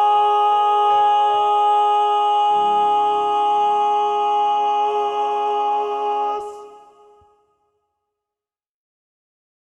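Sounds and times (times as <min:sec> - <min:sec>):
male TTBB choir with second tenor predominant: 0:00.0 - 0:07.3.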